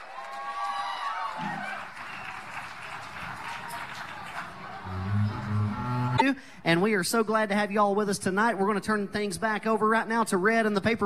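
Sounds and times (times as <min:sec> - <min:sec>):
crowd clapping and cheering: 0:00.0 - 0:06.2
speech: 0:06.7 - 0:11.0.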